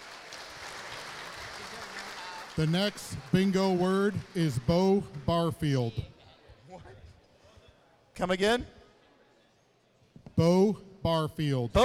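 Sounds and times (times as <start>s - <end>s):
audience applause: 0.0s - 5.9s
speech: 2.6s - 6.2s, 8.2s - 8.8s, 10.4s - 11.8s.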